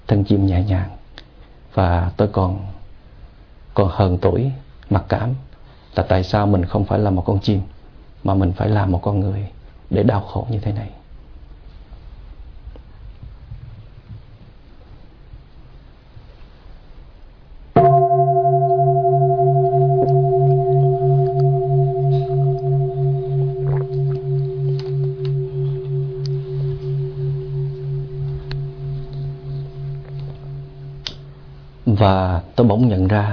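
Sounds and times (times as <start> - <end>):
speech: 0.1 - 1.0, 1.8 - 2.8, 3.8 - 11.0, 32.6 - 33.3
bell ringing: 17.8 - 31.7.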